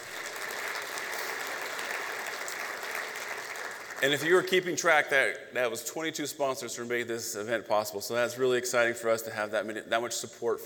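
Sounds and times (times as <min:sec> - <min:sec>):
round of applause: 0:00.0 - 0:04.5
speech: 0:04.0 - 0:10.6.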